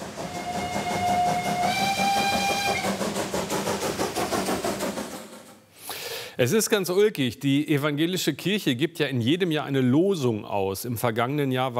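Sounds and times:
steam locomotive letting off steam: 0:00.0 - 0:06.4
speech: 0:06.4 - 0:11.7.

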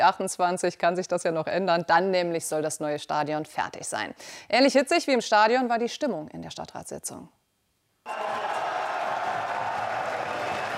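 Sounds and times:
speech: 0:00.0 - 0:07.4
fans cheering in a hall: 0:08.1 - 0:10.7.

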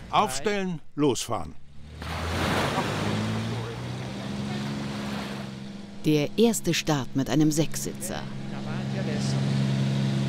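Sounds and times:
speech: 0:00.1 - 0:01.6, 0:06.0 - 0:09.5
waves from a passing ferry: 0:02.0 - 0:05.5.

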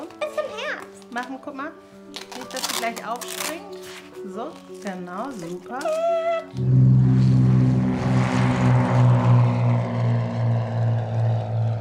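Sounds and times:
speech: 0:01.2 - 0:06.8
propeller airplane engine droning in flight: 0:06.4 - 0:11.8.

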